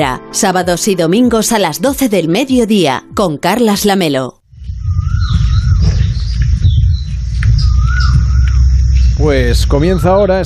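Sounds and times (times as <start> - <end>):
speech: 0.0 - 4.4, 9.2 - 10.4
steady low rumble: 4.4 - 10.4
birds calling in a natural park in India: 4.6 - 10.4.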